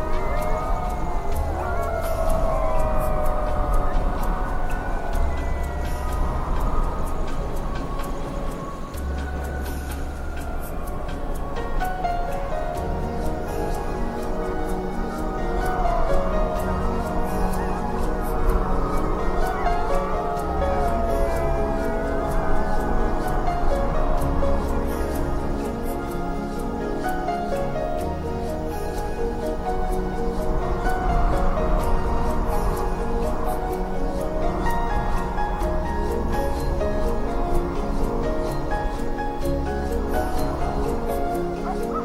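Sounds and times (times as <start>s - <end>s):
ambient music with deep bass and sustained chords: 0.0s - 42.0s.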